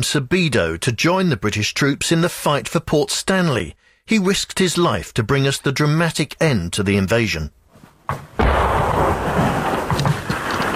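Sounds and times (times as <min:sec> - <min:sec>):
speech: 0:00.0 - 0:09.3
incoming artillery fire: 0:08.4 - 0:10.7.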